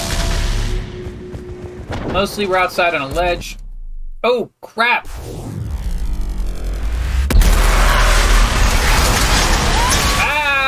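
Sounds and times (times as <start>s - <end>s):
speech: 2.1s - 3.6s, 4.2s - 5.4s
ship exploding in the sky in a video game: 5.1s - 10.3s.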